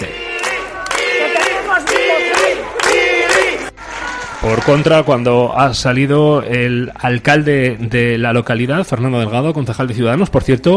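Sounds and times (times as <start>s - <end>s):
crowd of neighbours applauding and cheering: 0.0s - 5.4s
speech: 4.4s - 10.7s.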